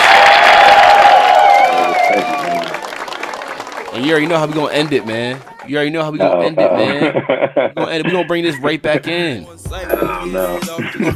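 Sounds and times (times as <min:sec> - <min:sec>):
round of applause: 0:00.0 - 0:06.1
laughter: 0:04.0 - 0:09.3, 0:10.0 - 0:11.1
speech: 0:04.0 - 0:11.1.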